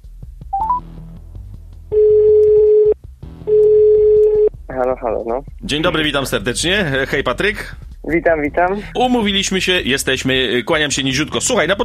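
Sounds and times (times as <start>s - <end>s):
telephone dialing beeps: 0.6s - 0.8s, 2.0s - 4.5s
telephone ringback tone: 0.6s - 0.8s, 1.9s - 4.5s
speech: 4.8s - 11.8s.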